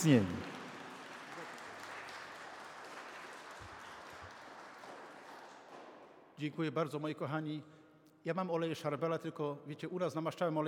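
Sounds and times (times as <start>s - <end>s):
speech: 0.0s - 0.4s, 6.4s - 10.6s
audience applause: 0.0s - 5.8s.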